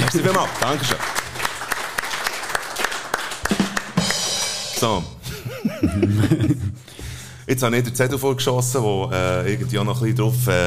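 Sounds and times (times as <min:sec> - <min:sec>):
laughter: 0:00.0 - 0:00.9, 0:05.2 - 0:06.9
applause: 0:00.0 - 0:04.8
speech: 0:00.1 - 0:01.2, 0:04.8 - 0:10.6.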